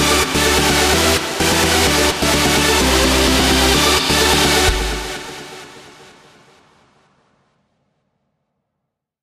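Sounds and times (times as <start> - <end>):
electro festival music: 0.0 - 6.6.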